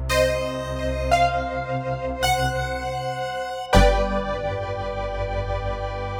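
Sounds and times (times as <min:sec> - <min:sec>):
pulse width modulated synth: 0:00.1 - 0:06.0.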